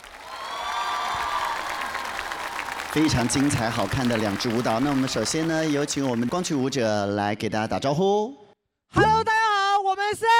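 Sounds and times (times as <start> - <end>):
audience applause: 0.0 - 7.0
speech: 2.9 - 9.3, 10.1 - 10.3.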